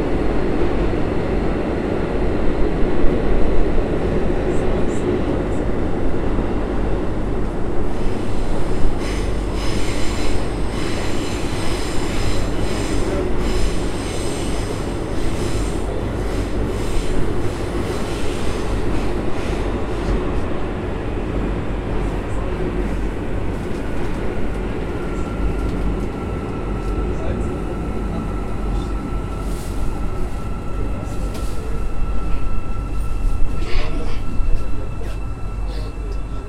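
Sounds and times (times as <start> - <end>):
subway train: 0.0 - 36.4.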